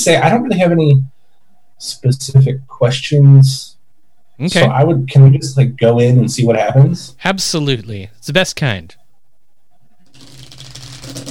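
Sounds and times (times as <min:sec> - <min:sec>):
speech: 0:00.0 - 0:01.1, 0:01.8 - 0:03.7, 0:04.4 - 0:09.0
cards being shuffled: 0:10.2 - 0:11.2.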